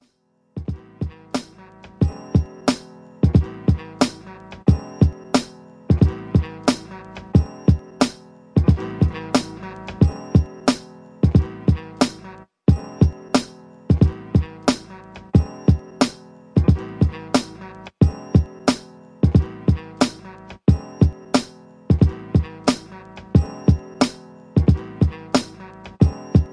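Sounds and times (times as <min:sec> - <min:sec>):
soul jazz funk music: 0:00.7 - 0:26.5.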